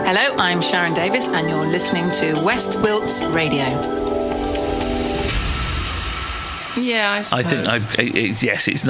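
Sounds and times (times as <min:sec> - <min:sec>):
speech: 0:00.1 - 0:04.3, 0:06.8 - 0:08.8
musical diving-in splash effect: 0:04.3 - 0:06.8.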